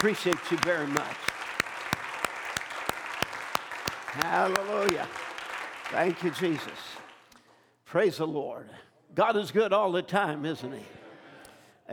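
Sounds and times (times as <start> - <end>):
speech: 0.0 - 1.4, 4.2 - 5.2, 5.9 - 7.0, 7.9 - 11.0
audience applause: 0.0 - 7.2.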